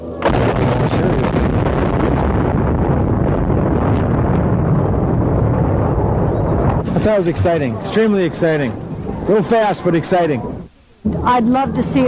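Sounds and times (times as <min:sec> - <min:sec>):
heavy rumbling roar of a collapsing steel bridge: 0:00.0 - 0:12.0
charges detonating in a steel bridge demolition: 0:00.2 - 0:09.3
speech: 0:07.0 - 0:12.0.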